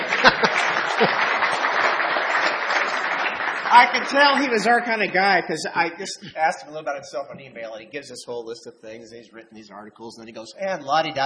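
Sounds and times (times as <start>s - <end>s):
audience applause welcoming a guest speaker: 0.0s - 5.4s
laughter: 0.0s - 6.8s
speech: 3.7s - 11.2s.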